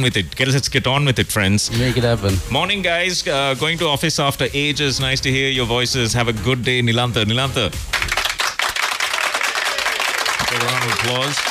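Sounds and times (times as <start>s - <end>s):
speech: 0.0s - 8.1s, 10.6s - 11.5s
applause sound effect: 7.9s - 11.5s.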